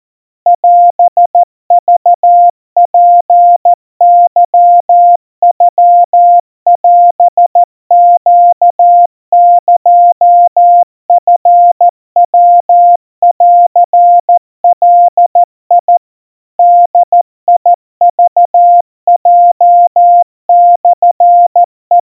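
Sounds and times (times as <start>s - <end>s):
crispy 700 Hz Morse code tones at 50 cpm: 0.5s - 16.1s, 16.6s - 22.0s.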